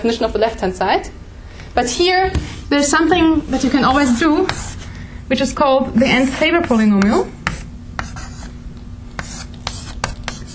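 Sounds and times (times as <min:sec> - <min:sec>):
speech: 0:00.0 - 0:01.2, 0:01.8 - 0:07.4
low steady hum: 0:00.0 - 0:10.5
chalk or marker writing on a board during a maths lecture: 0:04.0 - 0:04.9, 0:06.3 - 0:08.5, 0:09.2 - 0:10.5.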